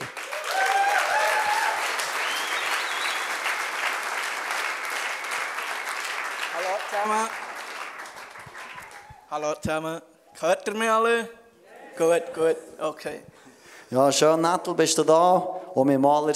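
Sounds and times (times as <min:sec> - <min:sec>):
audience applause: 0:00.0 - 0:09.3
speech: 0:07.0 - 0:07.4, 0:09.3 - 0:11.4, 0:12.0 - 0:16.3.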